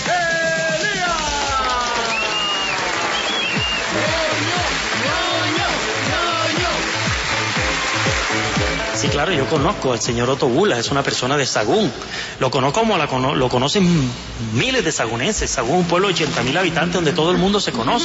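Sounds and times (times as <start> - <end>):
audience applause: 0.0 - 9.7
speech: 9.0 - 18.0.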